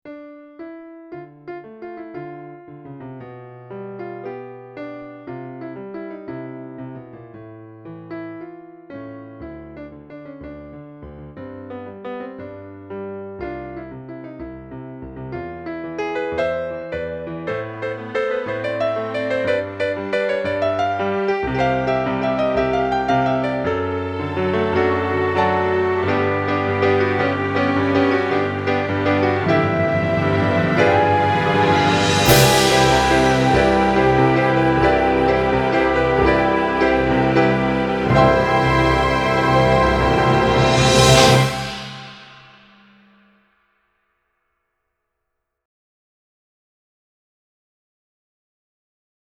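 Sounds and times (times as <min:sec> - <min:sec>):
light theatre music with big finish: 0:17.0 - 0:42.7.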